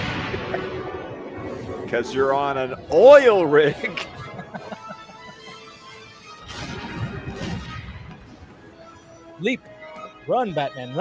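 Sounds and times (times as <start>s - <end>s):
explosions in animated film: 0.0s - 3.5s, 6.4s - 8.3s
quiet tonal music: 0.0s - 11.0s
speech: 1.9s - 4.1s, 9.4s - 9.7s, 10.3s - 11.0s
laughter: 2.0s - 6.1s.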